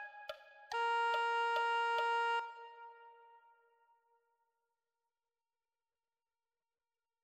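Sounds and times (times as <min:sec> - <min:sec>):
soprano saxophone: 0:00.7 - 0:03.5.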